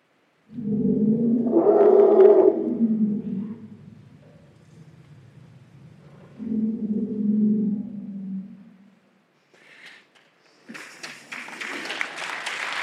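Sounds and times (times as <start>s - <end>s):
elephant rumbling call at the birth of a baby elephant: 0.5s - 9.0s.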